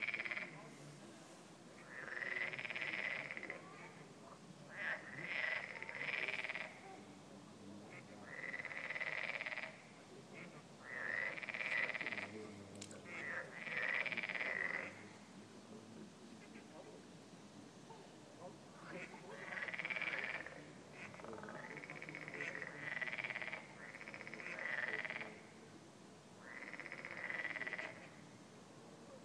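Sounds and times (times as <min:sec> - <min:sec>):
frogs in pond: 0:00.0 - 0:00.7, 0:01.7 - 0:07.0, 0:07.8 - 0:17.0, 0:18.4 - 0:29.2
ducks in pond: 0:01.8 - 0:03.6, 0:04.7 - 0:06.8, 0:07.9 - 0:15.0, 0:16.4 - 0:16.9, 0:18.8 - 0:25.4, 0:26.4 - 0:28.2.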